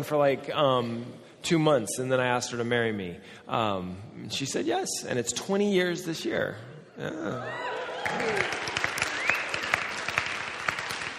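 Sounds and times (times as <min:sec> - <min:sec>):
speech: 0:00.0 - 0:08.7
audience applause: 0:07.4 - 0:11.1.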